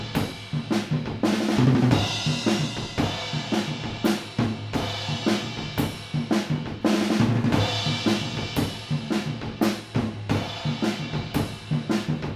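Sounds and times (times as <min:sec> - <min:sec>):
fathead drums recorded with mid-side stereo: 0:00.0 - 0:12.3.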